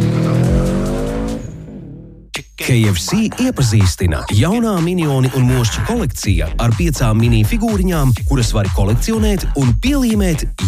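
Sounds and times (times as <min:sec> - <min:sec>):
autocross race cars squealing through a skid: 0:00.0 - 0:02.0
autocross race car engines roaring at the Pauska sports complex: 0:00.0 - 0:02.1
speech: 0:02.6 - 0:10.6.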